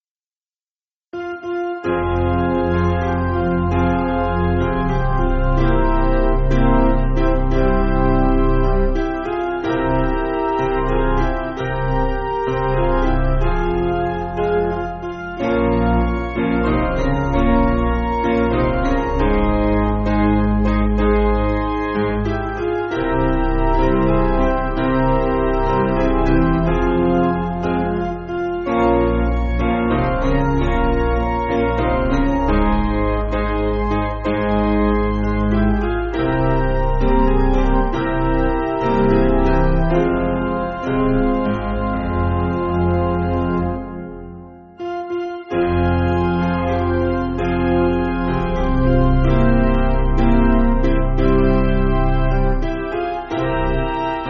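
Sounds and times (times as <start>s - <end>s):
piano: 1.2s - 54.2s.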